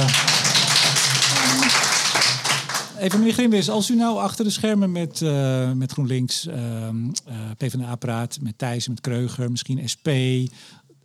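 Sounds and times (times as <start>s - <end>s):
lone person clapping: 0.0s - 3.3s
speech: 3.0s - 10.8s.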